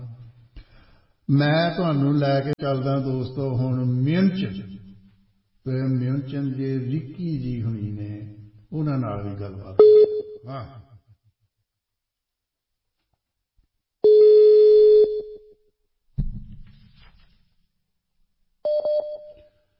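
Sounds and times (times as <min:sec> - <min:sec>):
speech: 0:01.3 - 0:04.8, 0:05.6 - 0:10.8
electronic telephone call tones: 0:14.0 - 0:15.5, 0:18.7 - 0:19.5.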